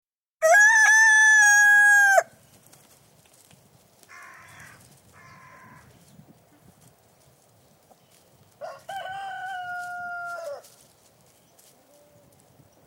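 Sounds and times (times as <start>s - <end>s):
rooster crowing cock-a-doodle-doo in a yard: 0.4s - 2.3s, 8.6s - 10.8s.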